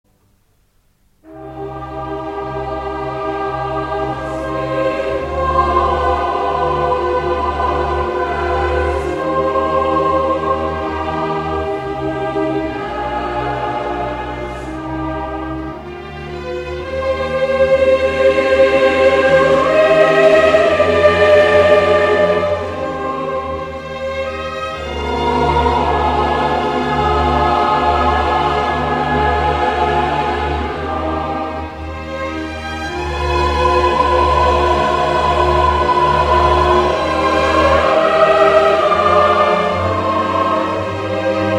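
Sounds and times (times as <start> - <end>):
choir of shepherds and shepherdesses singing: 1.2 - 41.5.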